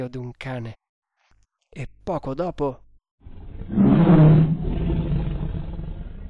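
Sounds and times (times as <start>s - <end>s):
speech: 0.0s - 0.8s, 1.7s - 2.8s
tiger roar-like meow: 3.3s - 6.2s.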